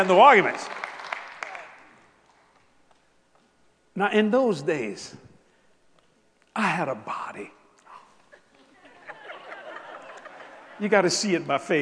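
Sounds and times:
speech: 0.0 - 0.8, 4.0 - 5.3, 6.6 - 7.6, 10.8 - 11.8
audience hand clapping: 0.0 - 3.0
laughter: 8.3 - 11.4.

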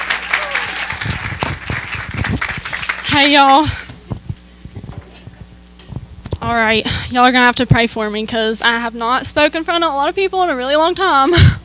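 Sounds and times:
church congregation applauding to welcome a speaker: 0.0 - 3.6
speech: 3.2 - 3.8, 6.4 - 11.6.

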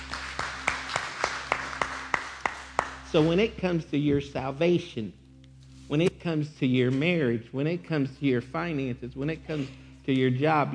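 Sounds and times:
church congregation clapping hands for the Lord: 0.0 - 3.4
speech: 3.1 - 5.2, 5.9 - 10.7.

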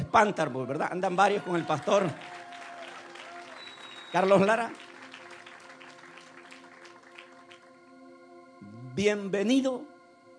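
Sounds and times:
speech: 0.1 - 2.5, 4.1 - 4.9, 9.0 - 9.9
audience applauding: 1.1 - 7.7.

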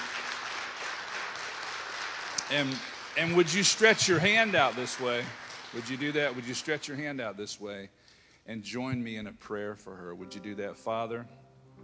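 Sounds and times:
church congregation applauding: 0.0 - 7.6
speech: 2.5 - 11.4.

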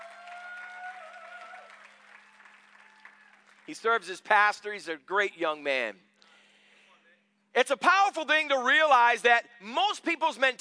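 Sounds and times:
audience hand clapping applause: 0.0 - 3.8
speech: 3.7 - 6.1, 7.6 - 10.5.

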